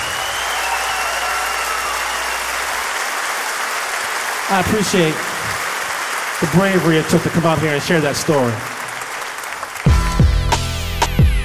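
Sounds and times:
audience applause: 0:00.0 - 0:10.4
speech: 0:04.5 - 0:05.3, 0:06.4 - 0:08.7.

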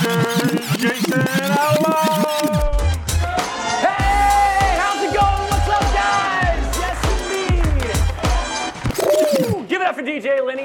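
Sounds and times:
thumping bass beat: 0:00.0 - 0:09.6
audience cheering with whoops and shouts: 0:03.2 - 0:09.5.

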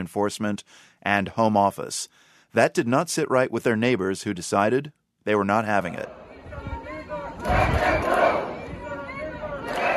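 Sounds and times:
speech: 0:00.0 - 0:06.2
hundreds of protesters chanting around a Home Office immigration van in Glasgow: 0:05.9 - 0:09.9.

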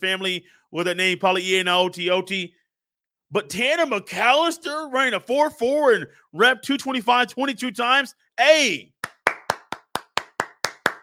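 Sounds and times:
speech: 0:00.0 - 0:02.6, 0:03.3 - 0:08.9
hand clapping: 0:09.0 - 0:11.0.

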